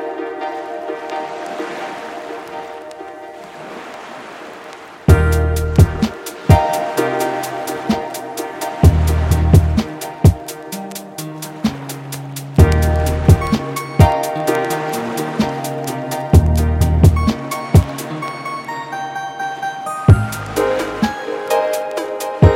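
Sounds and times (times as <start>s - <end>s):
rock fillers: 5.1s - 18.0s, 20.1s - 22.5s.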